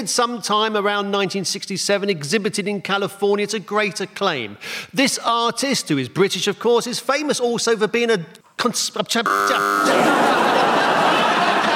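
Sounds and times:
speech: 0:00.0 - 0:10.4
quiz show buzzer: 0:09.2 - 0:10.6
noisy burst of laughter and commotion: 0:09.6 - 0:11.7.

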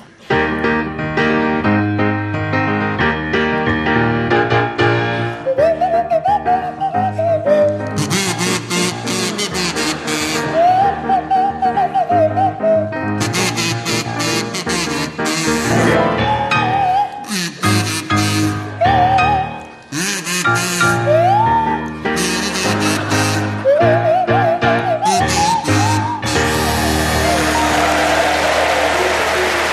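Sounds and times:
full loud pop backing track: 0:00.4 - 0:28.7
sliding swanee whistle: 0:05.3 - 0:29.6
buzzy kazoo playing a bouncy pop tune: 0:07.8 - 0:11.5, 0:13.1 - 0:28.1.

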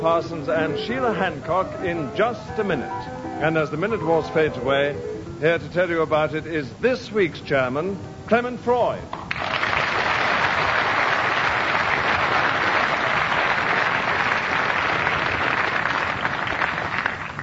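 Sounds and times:
speech: 0:00.0 - 0:09.2
studio audience applause welcoming the chairman of a panel game: 0:09.2 - 0:17.4.

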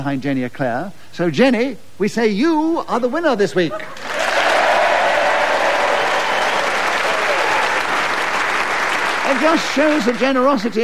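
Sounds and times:
speech: 0:00.0 - 0:04.0, 0:09.3 - 0:10.8
audience applause: 0:04.0 - 0:10.7.

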